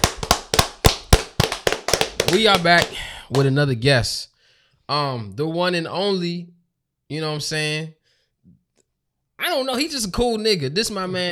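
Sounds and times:
hand claps: 0.0 - 3.6
speech: 2.3 - 4.3, 4.9 - 8.6, 9.4 - 11.3.

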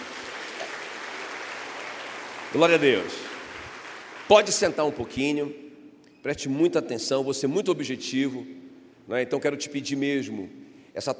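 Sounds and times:
audience applauding: 0.0 - 5.2
speech: 2.5 - 3.3, 4.3 - 5.6, 6.2 - 11.1.

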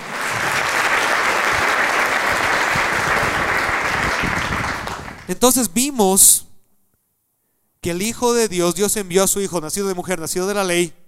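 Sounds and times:
audience applause: 0.0 - 5.3
speech: 5.3 - 6.5, 7.8 - 11.0.

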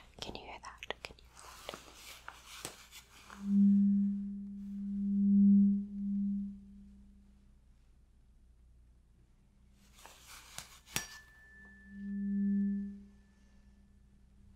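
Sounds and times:
tuning fork tone: 3.4 - 7.6, 11.0 - 14.5.

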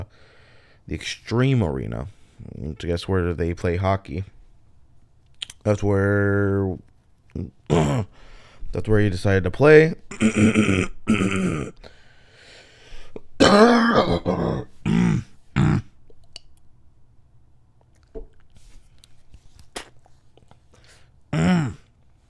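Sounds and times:
speech: 0.9 - 4.4, 5.6 - 12.0, 13.4 - 15.2
throat clearing: 7.4 - 8.1, 10.1 - 11.8, 13.4 - 16.0, 21.3 - 21.9
harsh coughing: 10.1 - 11.8, 13.4 - 16.0, 21.3 - 21.9.

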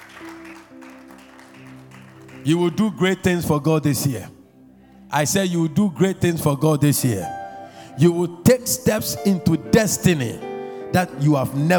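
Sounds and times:
audience clapping: 0.0 - 3.0
speech: 2.4 - 4.4, 5.1 - 7.4, 8.0 - 11.7.

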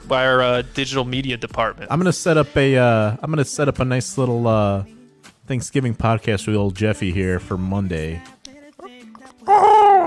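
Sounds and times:
speech: 0.1 - 8.4
bird chirping in the room: 9.4 - 10.0.

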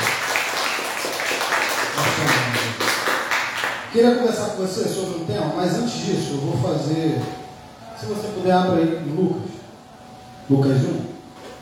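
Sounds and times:
audience applauding: 0.0 - 3.9
speech: 3.9 - 7.4, 8.0 - 9.5, 10.5 - 11.0.

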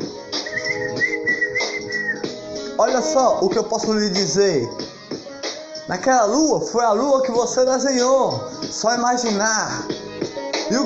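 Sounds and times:
person whistling bird-like tune imitating a songbird: 0.3 - 2.5
speech: 2.8 - 4.8, 5.9 - 9.9, 10.7 - 10.8.

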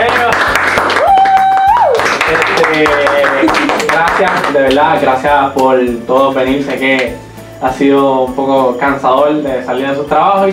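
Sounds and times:
audience applause: 0.0 - 4.6
speech: 4.8 - 10.5.

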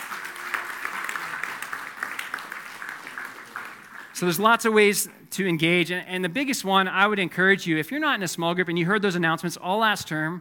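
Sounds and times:
audience applause: 0.0 - 4.6
speech: 4.2 - 10.3.

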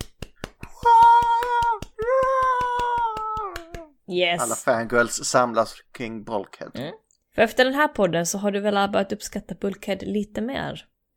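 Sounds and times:
hand clapping: 0.0 - 4.6
speech: 4.1 - 11.1.

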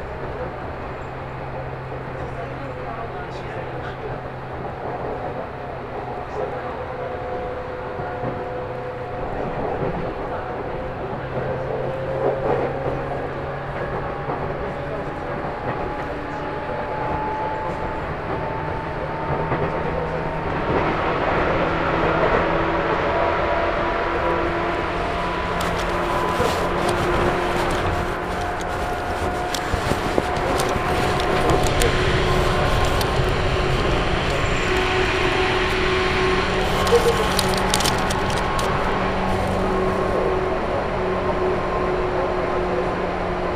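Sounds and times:
Chuo East Line local train rumbling: 0.0 - 43.5
murmured voices: 0.0 - 43.5.

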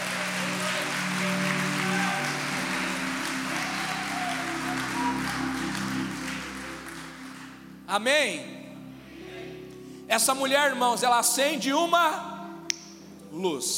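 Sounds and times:
audience applause: 0.0 - 7.8
speech: 7.9 - 8.6, 10.1 - 12.3, 13.3 - 13.7.

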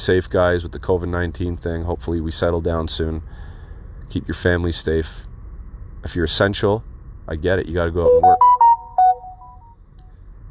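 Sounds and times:
speech: 0.0 - 3.5, 4.1 - 5.3, 6.0 - 8.5
phone notification chime: 8.1 - 9.7.

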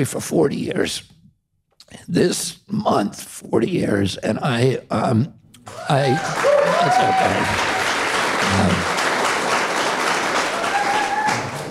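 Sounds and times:
speech: 0.0 - 1.2, 1.9 - 7.7, 8.4 - 8.9
audience applause: 5.7 - 11.6.

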